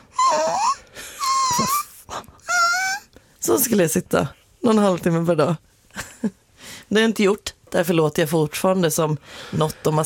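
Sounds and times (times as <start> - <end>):
person imitating a puppy: 0.0 - 3.1
speech: 3.4 - 10.0.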